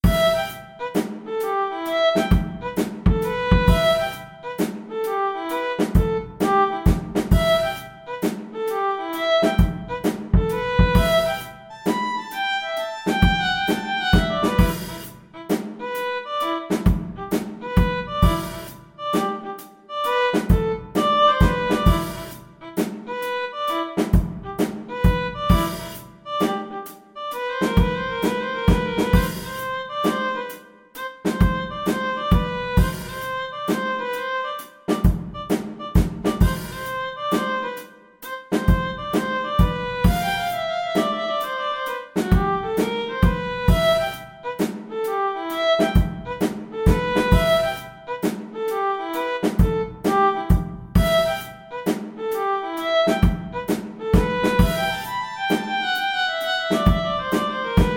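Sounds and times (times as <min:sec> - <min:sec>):
violin playing a funk study: 0:00.0 - 0:57.9.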